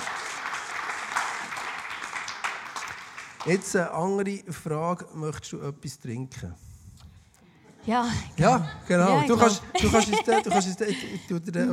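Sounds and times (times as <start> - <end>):
audience applause: 0.0 - 3.8
speech: 3.4 - 6.6, 7.9 - 11.7
laughter: 7.7 - 11.7.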